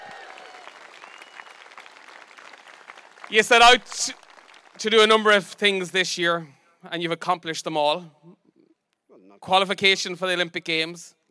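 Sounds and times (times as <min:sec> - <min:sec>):
audience applause: 0:00.0 - 0:05.5
speech: 0:03.3 - 0:04.2, 0:04.8 - 0:08.4, 0:09.4 - 0:11.2.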